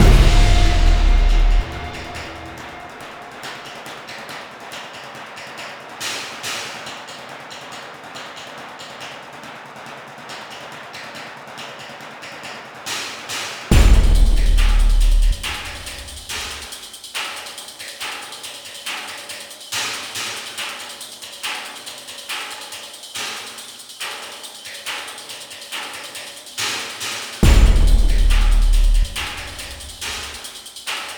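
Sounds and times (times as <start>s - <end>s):
suspense music: 0.0s - 3.9s, 13.7s - 16.7s, 27.4s - 30.4s.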